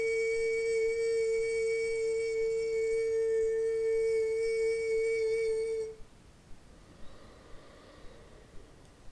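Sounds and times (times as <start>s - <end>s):
chakra tune: 0.0s - 6.0s.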